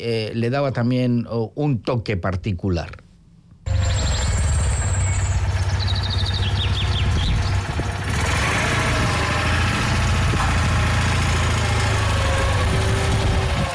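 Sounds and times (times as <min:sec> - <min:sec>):
speech: 0:00.0 - 0:03.0
van engine running: 0:03.7 - 0:13.7
birds chirping faintly: 0:03.9 - 0:07.7.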